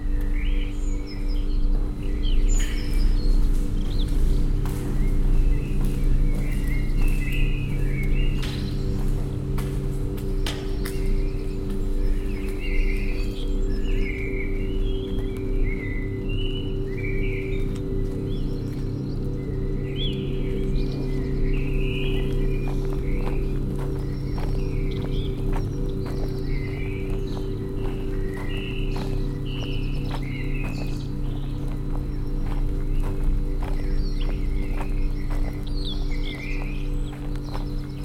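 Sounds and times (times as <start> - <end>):
chill soundscape: 0.0 - 38.0.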